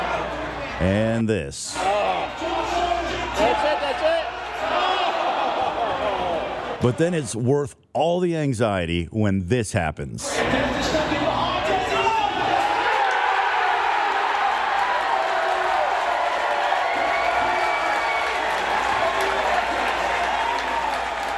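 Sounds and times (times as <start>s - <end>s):
speech: 0.8s - 2.8s, 6.8s - 10.8s
large football crowd cheering: 1.7s - 7.2s, 10.3s - 21.3s.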